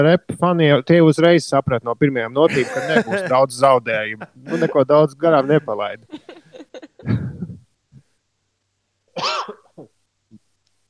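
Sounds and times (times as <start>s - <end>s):
speech: 0.0s - 6.2s, 7.0s - 7.3s
person coughing fit: 2.5s - 3.3s, 4.5s - 4.8s, 9.2s - 9.9s
laughter: 2.5s - 7.6s.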